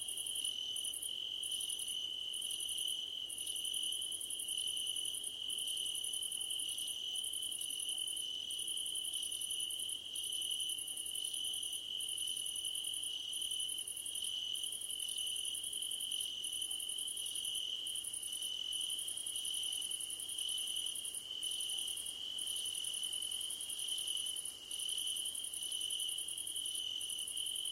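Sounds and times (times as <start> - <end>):
crickets chirping at night: 0.0 - 27.7.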